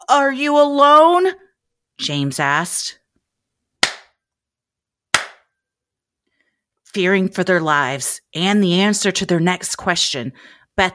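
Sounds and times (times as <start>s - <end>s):
speech: 0.1s - 1.4s, 2.0s - 3.0s, 6.9s - 10.9s
hand claps: 3.8s - 4.2s, 5.1s - 5.5s.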